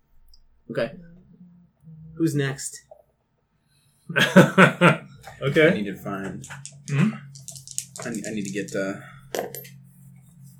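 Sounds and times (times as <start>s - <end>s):
low hum: 0.0s - 2.9s, 4.1s - 10.5s
speech: 0.7s - 1.1s, 2.2s - 2.9s, 4.1s - 7.2s, 8.0s - 9.8s
laughter: 4.1s - 7.3s
dice being rolled: 6.3s - 9.8s.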